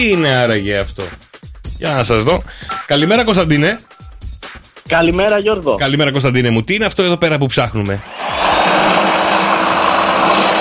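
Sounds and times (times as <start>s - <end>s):
speech: 0.0s - 3.9s, 4.9s - 8.5s
electric hedge trimmer running: 8.0s - 10.5s.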